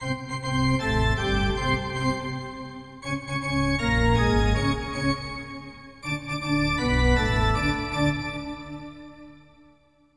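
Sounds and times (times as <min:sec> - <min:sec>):
organ: 0:00.0 - 0:09.8.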